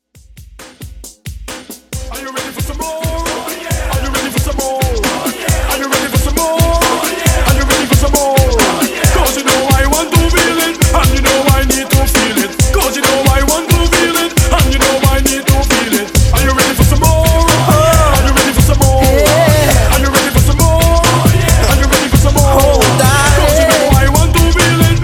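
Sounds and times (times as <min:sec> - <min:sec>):
90s style music at 130 BPM: 0:00.1 - 0:25.0.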